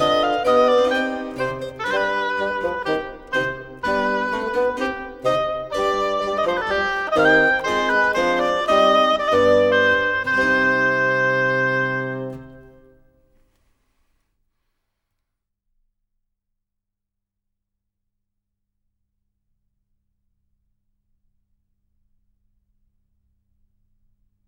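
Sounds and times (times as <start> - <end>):
bourree movement of a sonata in C minor: 0.0 - 13.4.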